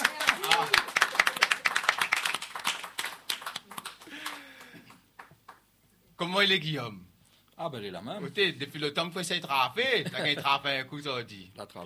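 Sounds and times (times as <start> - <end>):
audience applause: 0.0 - 5.6
speech: 6.3 - 11.8.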